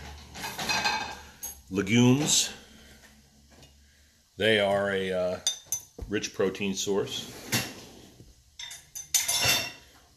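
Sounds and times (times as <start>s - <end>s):
dishes clinking while loading a dishwasher: 0.0s - 2.5s, 5.4s - 6.1s, 8.6s - 9.9s
speech: 1.7s - 2.6s, 4.4s - 7.5s.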